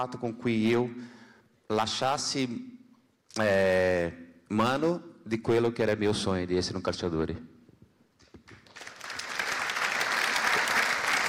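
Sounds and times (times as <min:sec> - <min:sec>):
speech: 0:00.0 - 0:02.8, 0:03.4 - 0:07.5
audience applause: 0:08.6 - 0:11.2.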